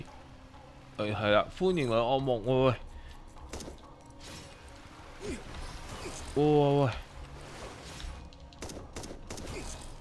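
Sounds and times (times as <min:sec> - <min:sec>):
speech: 0:01.0 - 0:02.9, 0:06.4 - 0:07.1
video game gunfire aimed at a boss: 0:08.6 - 0:09.9.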